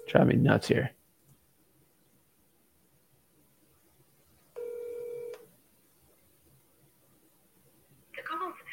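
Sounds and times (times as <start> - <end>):
speech: 0.1 - 1.0
telephone ring tone: 4.6 - 5.4.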